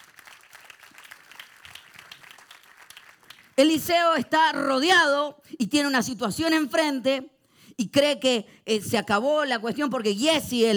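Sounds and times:
audience applause: 0:00.0 - 0:03.6
speech: 0:03.6 - 0:10.7.

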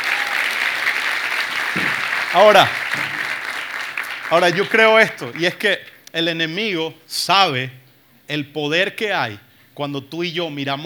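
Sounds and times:
audience applauding: 0:00.0 - 0:05.7
speech: 0:01.8 - 0:03.2, 0:04.3 - 0:10.8.

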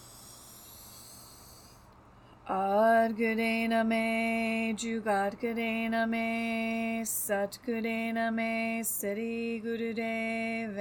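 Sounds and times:
deep inhale through the nose during a right-nostril breathing exercise: 0:00.0 - 0:02.4
speech: 0:02.5 - 0:10.8.

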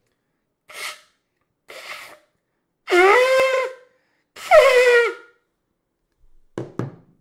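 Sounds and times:
corneta horn being blown: 0:02.9 - 0:03.8, 0:04.4 - 0:05.2.

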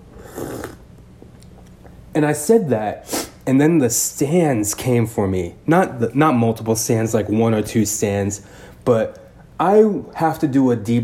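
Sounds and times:
person sipping tea: 0:00.0 - 0:01.6
speech: 0:02.2 - 0:11.0.

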